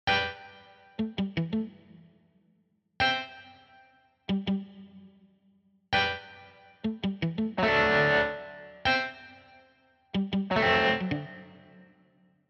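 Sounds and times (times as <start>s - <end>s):
guitar: 0.1s - 2.2s, 3.0s - 5.2s, 6.0s - 12.0s.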